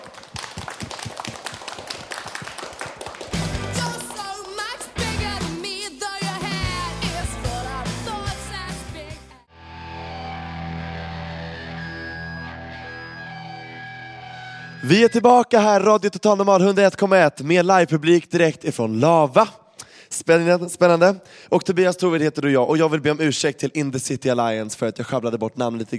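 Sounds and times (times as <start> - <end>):
live audience applause: 0.0 - 5.0
speech: 14.9 - 19.6, 20.3 - 25.9.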